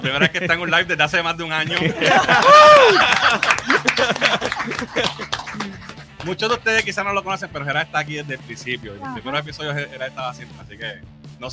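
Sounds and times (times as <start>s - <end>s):
laughter: 0.0s - 6.9s
speech: 0.0s - 11.5s
audience applause: 1.7s - 6.8s.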